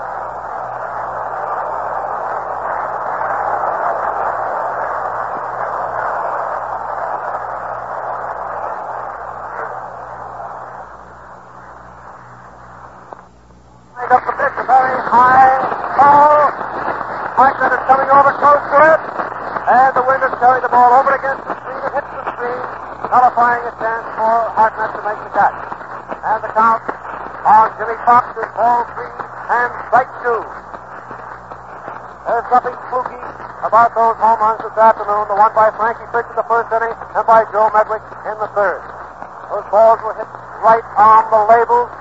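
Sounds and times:
baseball stadium crowd roaring and cheering: 0.0s - 12.5s, 14.0s - 23.7s
hiss: 0.0s - 41.9s
speech: 18.1s - 21.5s, 22.4s - 30.6s, 32.3s - 41.9s.

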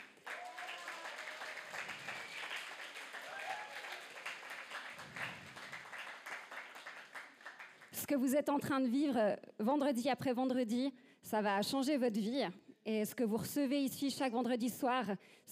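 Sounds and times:
audience applause: 0.0s - 7.9s
speech: 8.1s - 15.5s.

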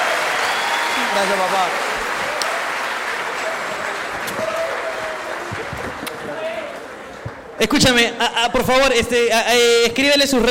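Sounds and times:
crowd whoops: 0.0s - 1.4s, 4.2s - 5.5s
crowd applause for a newly engaged woman: 0.0s - 7.6s
speech: 1.2s - 1.9s, 7.6s - 10.4s.

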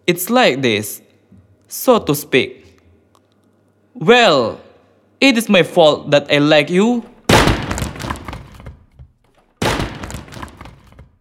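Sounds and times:
speech: 0.0s - 1.0s, 1.7s - 2.6s, 4.0s - 4.6s, 5.2s - 7.1s
furniture being smashed: 7.3s - 9.0s, 9.6s - 11.1s.

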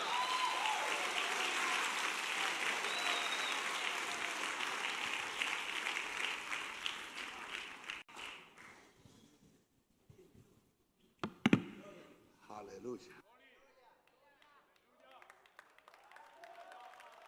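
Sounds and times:
audience applauding loudly: 0.0s - 8.8s, 14.2s - 17.2s.

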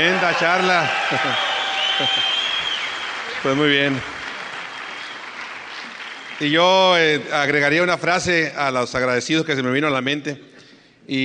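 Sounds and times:
speech: 0.0s - 2.3s, 3.4s - 4.2s, 6.4s - 10.5s, 11.1s - 11.2s
audience applause: 0.0s - 7.0s
laughter: 0.2s - 2.6s.

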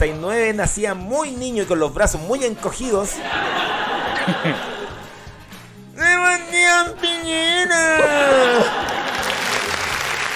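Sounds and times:
speech: 0.0s - 4.7s
laughter: 2.8s - 5.5s, 6.2s - 10.3s
applause: 8.5s - 10.3s.

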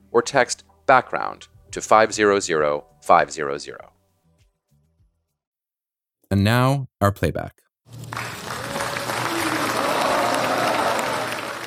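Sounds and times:
speech: 0.2s - 3.9s, 6.3s - 8.3s
applause at US Taliban peace agreement signing in Doha Qatar: 7.9s - 11.6s.

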